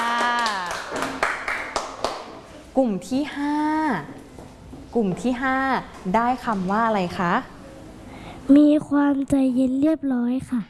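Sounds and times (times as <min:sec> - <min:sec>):
classroom clapping: 0:00.0 - 0:02.4
speech: 0:02.8 - 0:07.5, 0:08.5 - 0:10.6.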